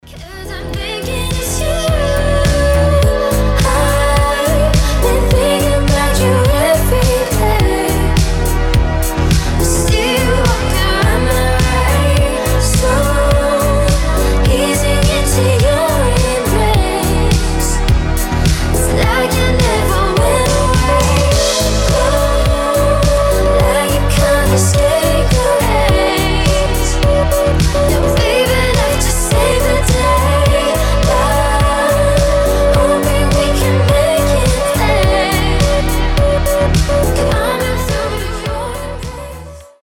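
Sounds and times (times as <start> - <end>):
deep house music extended mix: 0.0 - 39.8.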